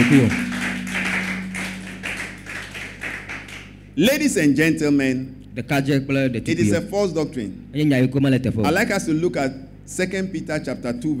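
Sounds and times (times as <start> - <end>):
speech: 0.0 - 0.5, 4.0 - 11.1
clapping: 0.0 - 3.8.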